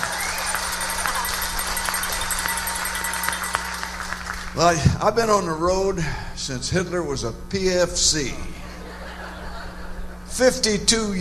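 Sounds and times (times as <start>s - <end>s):
theater audience clapping: 0.0s - 4.8s
speech: 4.6s - 8.6s, 10.4s - 11.1s
laughter: 8.4s - 10.3s.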